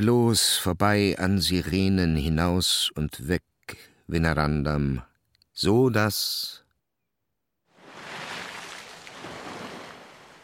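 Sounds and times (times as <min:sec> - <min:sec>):
speech: 0:00.0 - 0:06.6
sea surf foaming against a cliff: 0:07.8 - 0:10.4.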